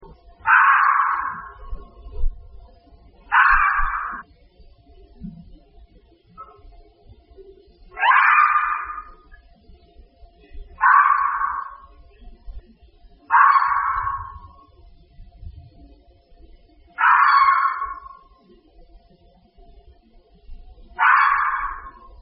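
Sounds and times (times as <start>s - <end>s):
fox: 0.1s - 2.5s, 3.2s - 4.3s, 6.3s - 6.7s, 7.9s - 9.4s, 10.8s - 12.2s, 13.2s - 14.8s, 16.8s - 18.6s, 20.8s - 22.2s.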